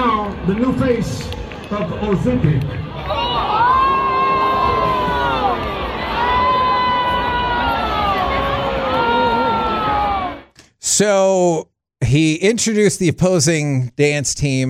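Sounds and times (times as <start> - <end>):
crowd at a dance event shouting and whooping: 0.0 - 10.5
speech: 0.5 - 3.2, 11.0 - 14.6.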